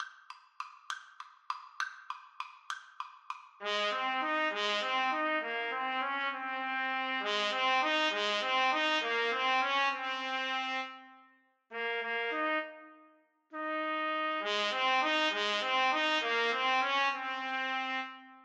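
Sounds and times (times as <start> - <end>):
trumpet duet: 3.6 - 18.4.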